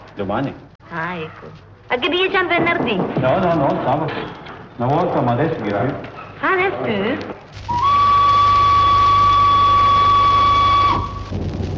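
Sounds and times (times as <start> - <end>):
speech: 0.2 - 7.8
sharp steady high whistle: 7.7 - 11.3.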